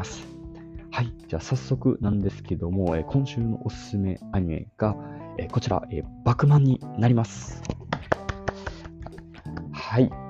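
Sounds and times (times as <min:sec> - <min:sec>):
speech: 0:00.0 - 0:00.3, 0:01.0 - 0:07.8, 0:09.9 - 0:10.2
person clapping hands: 0:07.5 - 0:09.8.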